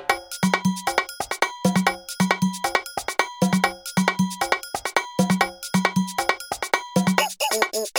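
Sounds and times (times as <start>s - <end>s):
song: 0.1s - 7.8s.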